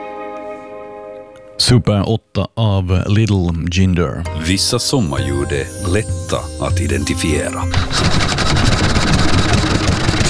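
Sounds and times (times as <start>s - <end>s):
speech: 1.6s - 9.7s
Olympia 3.5 horsepower engine running: 7.7s - 10.2s.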